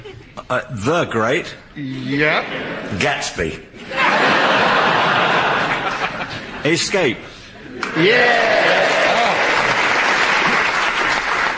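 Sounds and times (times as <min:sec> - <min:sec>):
speech: 0:00.5 - 0:04.2, 0:06.6 - 0:08.6
laughter: 0:02.0 - 0:07.0, 0:07.6 - 0:11.0
audience member applauding: 0:07.8 - 0:11.5.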